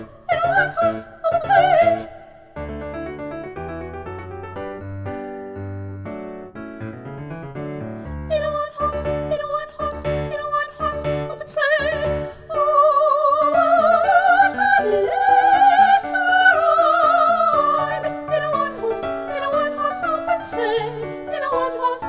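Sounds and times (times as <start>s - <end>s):
isolated soprano voice singing: 0.0s - 2.6s, 8.3s - 22.0s.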